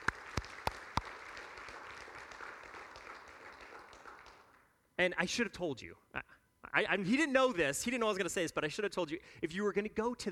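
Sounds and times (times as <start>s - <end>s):
audience applause: 0.0s - 4.6s
speech: 5.0s - 6.0s, 6.8s - 10.3s.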